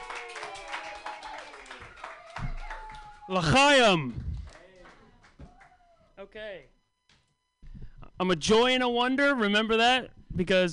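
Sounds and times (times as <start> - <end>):
open-mic comedy audience clapping for a comedian: 0.0 - 5.8
speech: 3.3 - 4.3, 6.3 - 6.8, 8.2 - 10.7.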